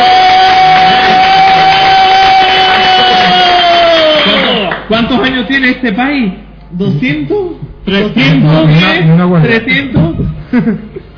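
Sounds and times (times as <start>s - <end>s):
applause: 0.0s - 5.0s
speech: 5.0s - 11.1s.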